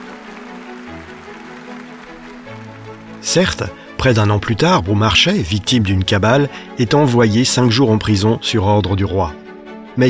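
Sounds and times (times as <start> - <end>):
theatre audience applause: 0.0 - 5.4
speech: 3.2 - 9.4.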